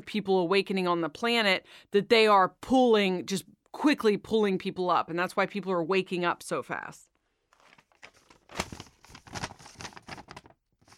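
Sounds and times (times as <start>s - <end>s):
speech: 0.1s - 7.1s
paper crinkling: 7.5s - 10.9s.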